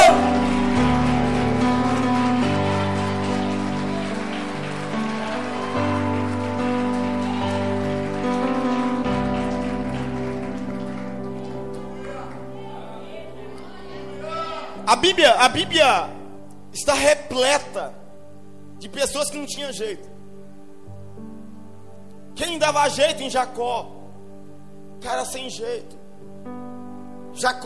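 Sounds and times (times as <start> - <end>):
audience applause: 0.0 - 12.9
speech: 14.9 - 16.1, 16.8 - 18.0, 18.8 - 20.1, 22.4 - 24.0, 25.0 - 26.0, 27.4 - 27.6.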